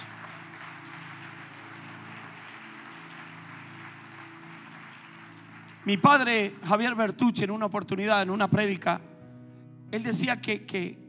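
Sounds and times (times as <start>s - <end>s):
audience applause: 0.0s - 6.4s
speech: 5.8s - 9.1s, 9.9s - 11.0s.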